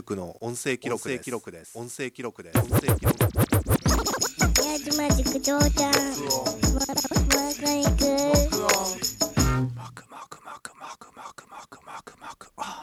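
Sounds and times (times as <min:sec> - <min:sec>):
speech: 0:00.0 - 0:03.5, 0:04.8 - 0:12.8
DJ record scratching on vinyl: 0:02.6 - 0:04.7, 0:06.7 - 0:07.4.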